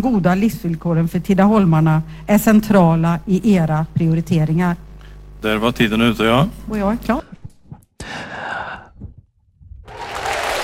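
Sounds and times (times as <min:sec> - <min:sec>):
speech: 0:00.0 - 0:07.4
applause: 0:09.8 - 0:10.6.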